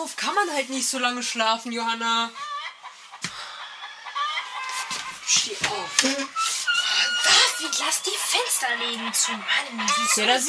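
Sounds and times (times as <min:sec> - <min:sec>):
speech: 0:00.0 - 0:02.5, 0:05.4 - 0:06.6, 0:07.3 - 0:10.4
rooster crowing: 0:02.4 - 0:10.4.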